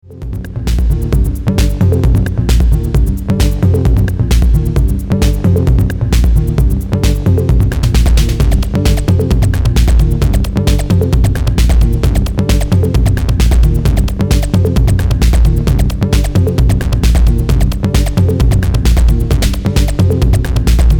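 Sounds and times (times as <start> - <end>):
TR-808 drum machine beats with echo: 0.0 - 20.9.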